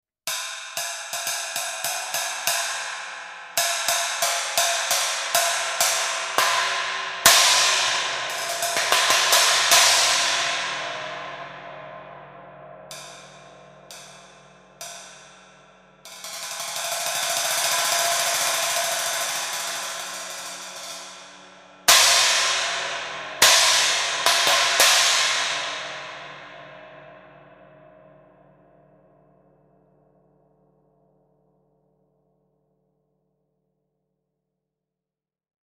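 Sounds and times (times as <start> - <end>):
Voodoo 27 inch china ride cymbal: 0.3 - 28.3.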